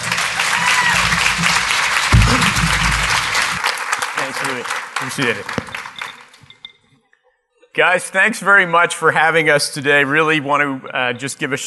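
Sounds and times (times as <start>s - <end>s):
audience applause: 0.0s - 6.4s
speech: 4.6s - 5.8s, 7.8s - 11.6s.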